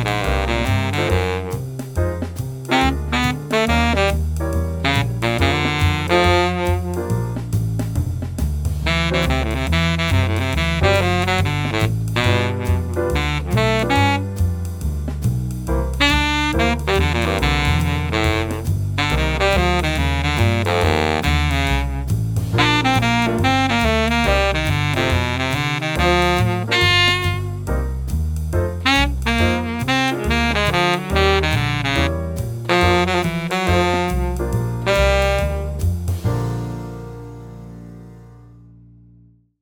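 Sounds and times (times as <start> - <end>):
jazz baritone saxophone: 0.0 - 37.9.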